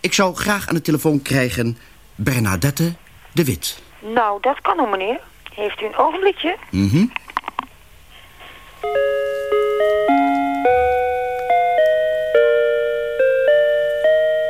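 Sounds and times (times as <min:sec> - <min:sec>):
speech: 0:00.0 - 0:07.2
music box with weak battery playing slowly: 0:08.6 - 0:14.4.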